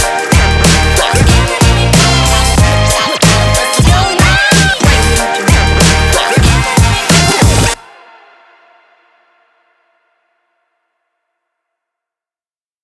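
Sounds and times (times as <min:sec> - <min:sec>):
boom bap hip hop beat: 0:00.0 - 0:08.6.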